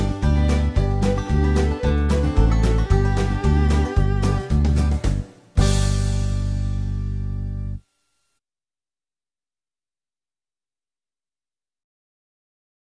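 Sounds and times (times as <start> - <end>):
instrumental folk tune: 0.0 - 7.9.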